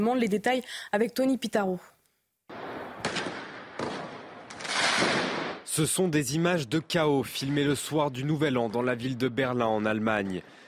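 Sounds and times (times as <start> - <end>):
speech: 0.0 - 2.0, 5.8 - 10.6
firework mortar blasts during New Year riots: 2.5 - 5.7.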